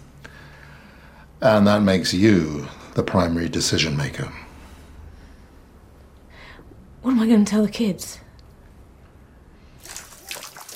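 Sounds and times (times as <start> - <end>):
speech: 1.4 - 4.4, 7.0 - 8.2
shower water spraying: 9.8 - 10.7.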